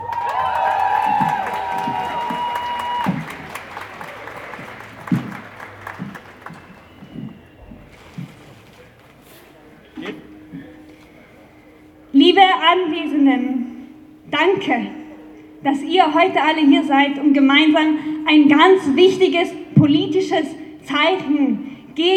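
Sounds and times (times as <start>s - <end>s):
crowd applause: 0.0s - 9.2s
speech: 12.7s - 13.5s, 14.4s - 15.0s, 15.7s - 22.1s.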